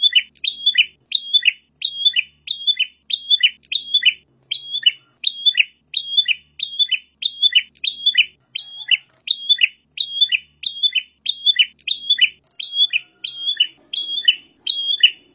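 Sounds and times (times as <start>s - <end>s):
bird chirping and whistling: 0.0s - 15.3s.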